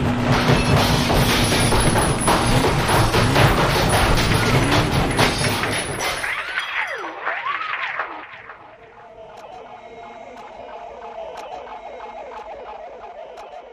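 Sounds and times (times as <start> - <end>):
rock crusher smashing a computer: 0.0 - 6.6
glassy shattering: 0.4 - 8.5
warbling electronic tones: 4.4 - 13.4.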